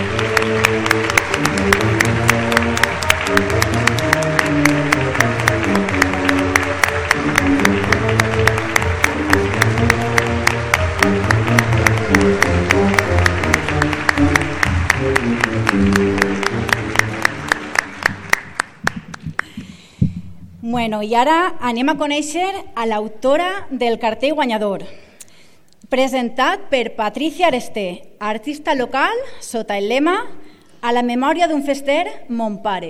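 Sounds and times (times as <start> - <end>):
low music: 0.0 - 18.8
audience applause: 0.0 - 19.6
speech: 20.9 - 25.0, 25.9 - 32.8.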